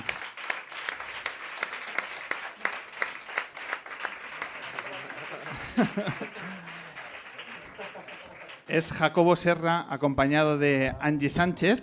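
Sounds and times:
audience applause: 0.0 - 9.0
laughter: 4.3 - 8.6
speech: 5.8 - 6.6, 8.7 - 11.8.

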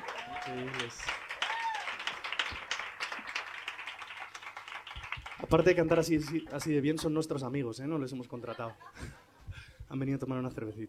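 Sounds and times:
voices calling out and cheering: 0.0 - 5.4
audience applause: 0.0 - 6.8
speech: 0.5 - 1.2, 5.4 - 9.2, 9.9 - 10.8.

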